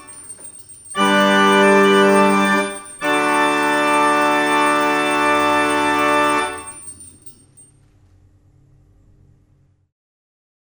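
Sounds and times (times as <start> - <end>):
organ playing a rigaudon: 1.0 - 6.9.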